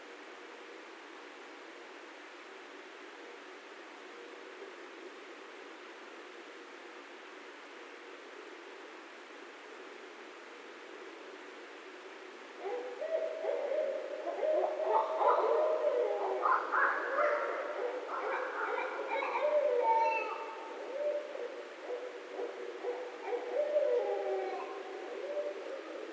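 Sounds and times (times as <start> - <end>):
Barred Owl calling: 12.6 - 26.1.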